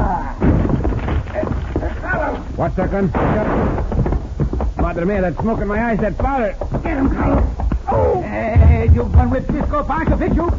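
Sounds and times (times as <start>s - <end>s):
heavy wooden door breaking under a shoulder charge: 0.4s - 4.2s
speech: 2.6s - 4.2s, 4.8s - 7.5s, 8.4s - 10.5s.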